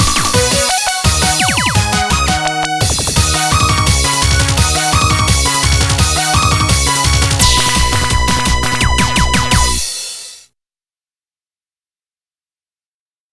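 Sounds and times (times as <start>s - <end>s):
off vocal instrumental music: 0.0s - 10.4s.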